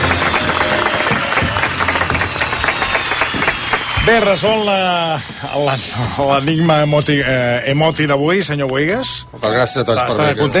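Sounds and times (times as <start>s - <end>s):
audience applause: 0.0s - 5.3s
speech: 4.0s - 10.5s.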